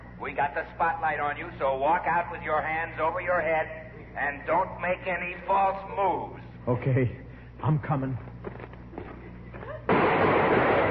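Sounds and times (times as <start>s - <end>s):
speech: 0.2s - 8.6s
gunshot sound effect in a radio comedy sketch: 9.9s - 10.8s.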